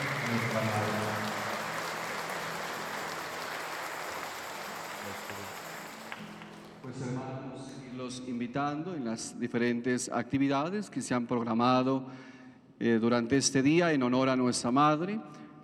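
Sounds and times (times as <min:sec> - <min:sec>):
crowd applauding: 0:00.0 - 0:06.8
speech: 0:00.3 - 0:01.2, 0:06.9 - 0:15.4.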